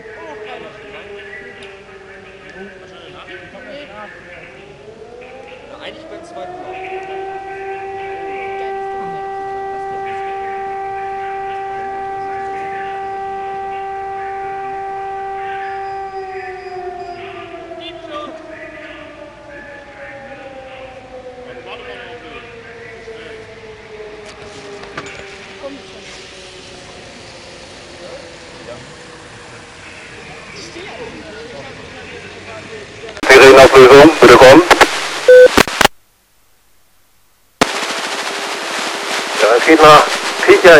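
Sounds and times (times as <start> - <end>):
siren alarm: 0.0 - 29.8, 33.2 - 35.7, 37.6 - 40.7
radio transmission: 33.2 - 36.0, 37.6 - 40.7.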